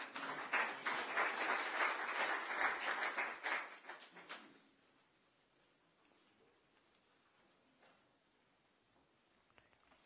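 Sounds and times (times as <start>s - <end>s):
audience applause welcoming a speaker at a talk in Stockholm: 0.0s - 4.4s.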